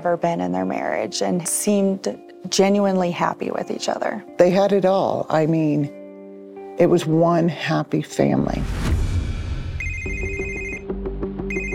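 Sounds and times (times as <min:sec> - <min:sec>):
speech: 0:00.0 - 0:06.0, 0:06.8 - 0:09.0
telephone ringing: 0:09.8 - 0:10.9, 0:11.5 - 0:11.7.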